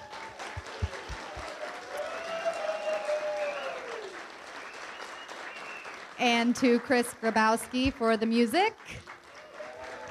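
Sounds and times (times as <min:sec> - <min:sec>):
audience applause: 0:00.0 - 0:10.0
whistles from the audience: 0:02.7 - 0:03.9, 0:04.6 - 0:06.0
speech: 0:06.2 - 0:09.1.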